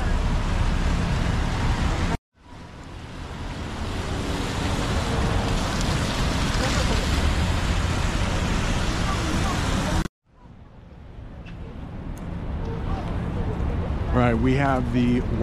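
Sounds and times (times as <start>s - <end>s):
passing traffic rumble: 0.0s - 15.4s
rain falling on a city street: 0.1s - 10.1s
speech: 14.3s - 15.4s.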